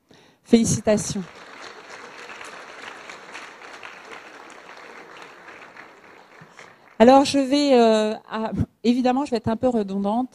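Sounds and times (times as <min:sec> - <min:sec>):
speech: 0:00.5 - 0:01.4, 0:07.0 - 0:10.3
audience at an École des Ponts master's programme event applauding: 0:00.9 - 0:07.6.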